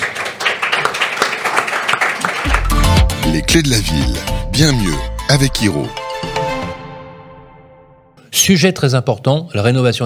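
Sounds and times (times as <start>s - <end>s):
crowd clapping: 0.0s - 4.2s
speech: 3.4s - 6.0s, 8.4s - 10.0s.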